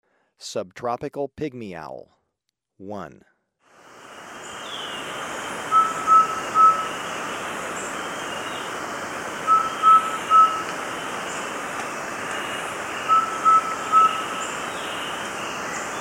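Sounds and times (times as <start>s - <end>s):
subtropical pygmy owl hooting: 4.4s - 15.9s.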